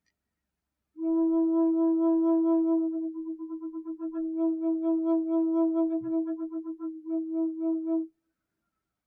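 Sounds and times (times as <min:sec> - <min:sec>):
Native American flute playing slow and quick: 0:01.0 - 0:08.1.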